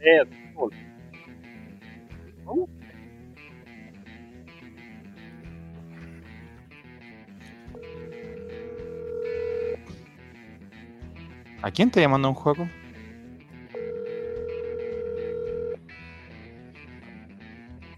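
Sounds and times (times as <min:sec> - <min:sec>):
speech: 0:00.0 - 0:00.8, 0:11.7 - 0:12.8
music: 0:00.0 - 0:17.9
telephone ringing tone: 0:07.8 - 0:09.8, 0:13.8 - 0:15.8.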